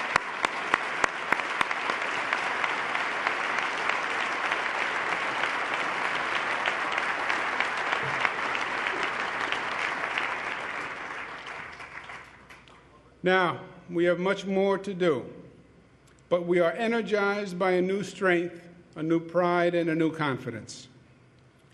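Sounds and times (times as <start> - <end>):
audience applauding: 0.0 - 12.7
speech: 13.2 - 15.4, 16.3 - 20.9.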